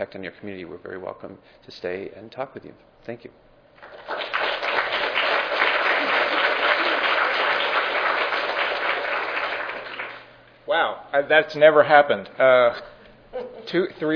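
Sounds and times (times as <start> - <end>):
speech: 0.0 - 4.2, 10.8 - 14.1
audience applause: 3.8 - 10.4.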